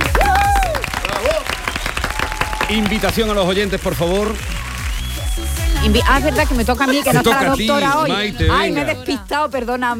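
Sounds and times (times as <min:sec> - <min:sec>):
applause: 0:00.0 - 0:06.6
speech: 0:02.7 - 0:04.6, 0:05.8 - 0:09.9.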